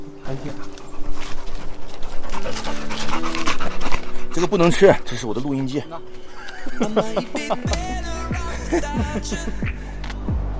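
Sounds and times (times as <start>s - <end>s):
dog panting on a mountain trail: 0.1s - 6.2s
speech: 0.3s - 1.3s, 2.4s - 10.0s
laughter: 6.2s - 9.9s.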